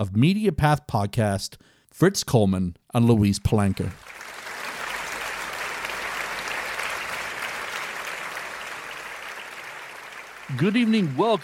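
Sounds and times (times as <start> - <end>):
speech: 0.0 - 4.2, 10.5 - 11.4
live audience applause welcoming two guest hosts: 3.6 - 11.4.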